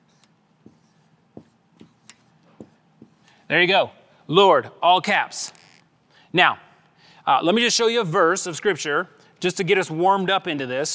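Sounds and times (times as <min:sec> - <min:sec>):
writing on a board: 0:00.0 - 0:03.4
low hiss: 0:00.0 - 0:10.9
speech: 0:03.5 - 0:05.6, 0:06.3 - 0:06.6, 0:07.2 - 0:10.9.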